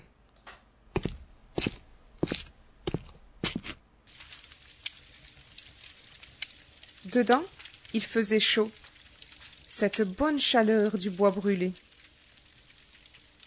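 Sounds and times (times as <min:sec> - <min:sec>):
shoes knocked against a doorstep: 0:00.9 - 0:03.7
soft gritty scuffing and crackle: 0:01.0 - 0:03.8
speech: 0:07.1 - 0:08.8, 0:09.8 - 0:11.8.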